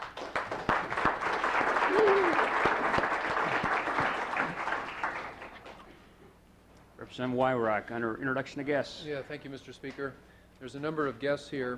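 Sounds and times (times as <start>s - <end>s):
applause on the floor of a legislative session welcoming a guest: 0.0s - 5.8s
speech: 7.2s - 11.7s.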